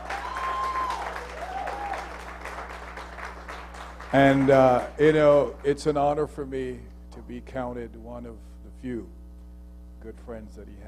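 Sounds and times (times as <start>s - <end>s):
whistles and cheers: 0.0s - 2.3s
audience applause: 0.0s - 5.8s
low steady hum: 0.0s - 10.8s
speech: 4.1s - 9.2s, 10.0s - 10.8s.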